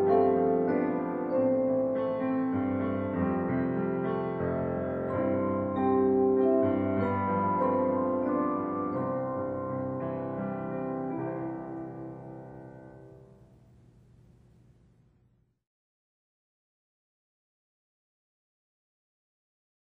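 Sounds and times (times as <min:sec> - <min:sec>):
instrumental Christmas carol: 0:00.0 - 0:13.3.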